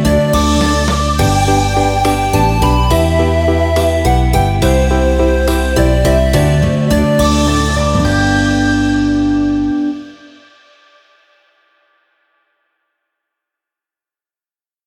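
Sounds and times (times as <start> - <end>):
karaoke singing: 0.0 - 10.2.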